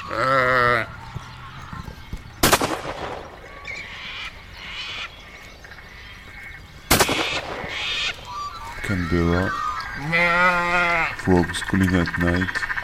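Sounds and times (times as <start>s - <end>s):
speech: 0.1s - 0.5s, 9.1s - 10.4s, 11.3s - 12.7s
rifle shot: 2.4s - 3.5s, 6.9s - 8.2s.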